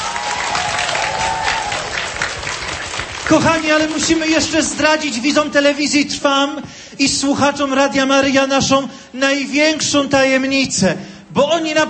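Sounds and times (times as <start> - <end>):
applause from a crowd at a religious pilgrimage to a Marian shrine: 0.0 - 5.2
speech: 3.3 - 11.8.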